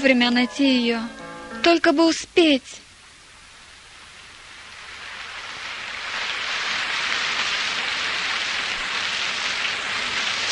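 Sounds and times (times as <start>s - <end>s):
speech: 0.0s - 2.8s
heavy rain in a stormy downpour: 2.8s - 10.5s.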